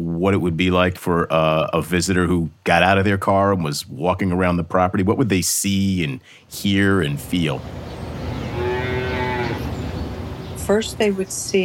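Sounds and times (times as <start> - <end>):
speech: 0.2 - 8.0, 10.7 - 11.6
cow mooing: 8.2 - 9.9.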